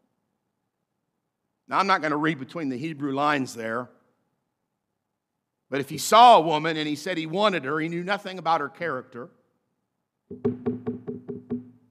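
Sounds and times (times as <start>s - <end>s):
speech: 1.7s - 4.0s, 5.7s - 9.4s, 10.3s - 10.8s
hollow knocking on a door: 10.3s - 11.8s.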